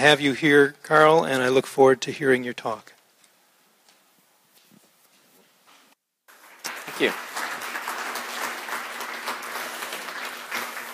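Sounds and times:
speech: 0.0s - 3.0s, 7.0s - 7.3s
audience clapping: 6.3s - 10.9s.

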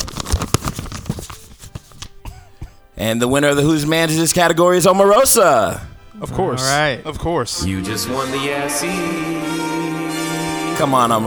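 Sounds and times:
award envelope paper tearing and rustling: 0.0s - 2.9s
speech: 3.0s - 9.8s, 10.8s - 11.2s.

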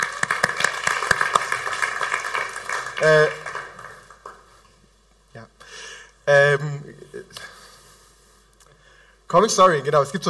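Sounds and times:
scattered applause: 0.0s - 4.6s
steady hiss: 0.0s - 10.2s
speech: 3.0s - 3.4s, 9.3s - 10.2s.

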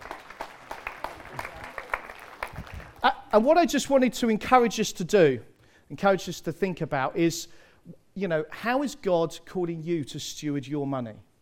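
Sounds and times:
audience applause: 0.0s - 3.1s
speech: 3.3s - 11.3s.

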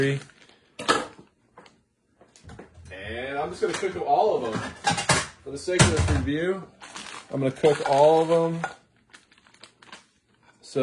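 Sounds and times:
speech: 0.0s - 0.3s, 3.4s - 8.8s
crinkling plastic as a Dollar Tree food package is opened: 0.0s - 0.8s, 6.7s - 10.8s.

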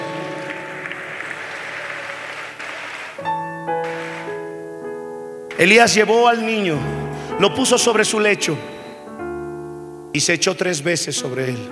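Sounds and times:
audience applauding: 0.0s - 4.9s, 5.5s - 9.0s
speech: 5.6s - 8.8s, 10.2s - 11.7s.

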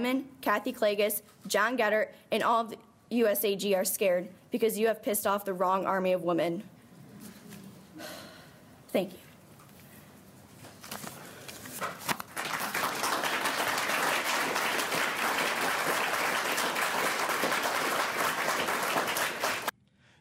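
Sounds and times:
speech: 0.0s - 6.7s, 8.9s - 9.2s
audience applause: 12.2s - 19.7s.

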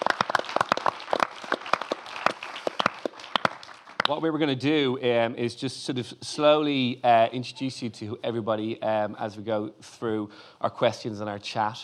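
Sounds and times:
audience applause: 0.0s - 4.2s
speech: 4.1s - 11.8s.

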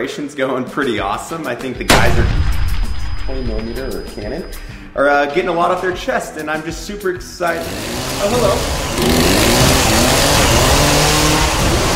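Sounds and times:
speech: 0.0s - 9.3s
chainsaw revving: 7.6s - 11.9s.

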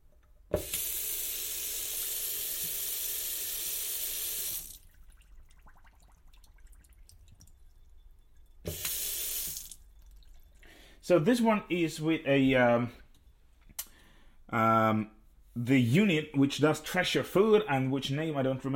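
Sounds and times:
water dripping and small splashes: 0.2s - 10.9s
tap running into a kitchen sink: 8.7s - 9.6s
speech: 11.1s - 13.0s, 14.5s - 18.7s.

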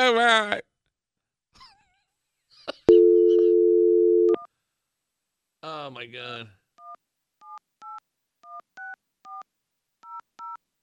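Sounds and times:
speech: 0.0s - 0.7s, 5.6s - 6.6s
telephone dialing tones: 2.9s - 4.4s.

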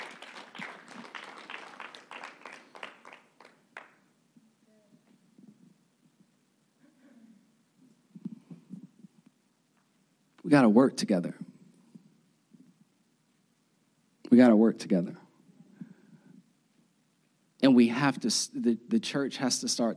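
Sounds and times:
audience applause: 0.0s - 4.0s
speech: 10.5s - 11.5s, 14.7s - 15.2s, 18.0s - 19.9s.

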